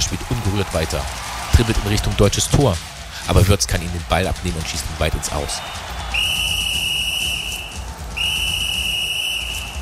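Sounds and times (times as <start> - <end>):
speech: 0.1 - 5.9
referee's whistle blasts: 6.1 - 9.8.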